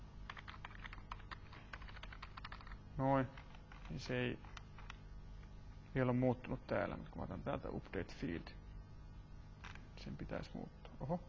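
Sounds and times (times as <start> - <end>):
typing on a computer keyboard: 0.3 - 2.8, 3.4 - 5.0
speech: 3.0 - 4.5, 6.0 - 8.6, 10.0 - 11.2.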